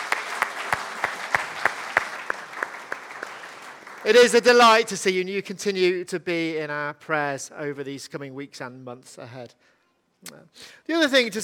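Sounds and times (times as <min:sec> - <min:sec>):
audience applause: 0:00.0 - 0:04.8
speech: 0:04.0 - 0:11.4.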